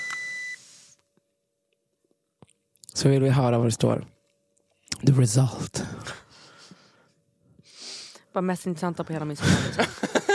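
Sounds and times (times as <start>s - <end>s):
breath alcohol tester beep: 0.0s - 0.6s
speech: 3.0s - 4.2s, 5.0s - 6.1s, 8.4s - 10.2s
laughter: 9.4s - 10.3s.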